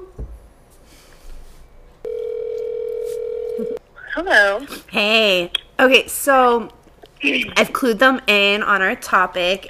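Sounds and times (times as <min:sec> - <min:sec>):
telephone call ringing out: 0:02.1 - 0:03.8
speech: 0:04.2 - 0:09.6.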